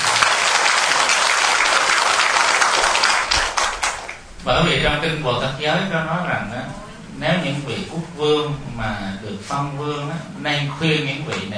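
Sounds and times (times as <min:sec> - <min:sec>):
audience applause: 0:00.0 - 0:04.4
speech: 0:04.5 - 0:11.5.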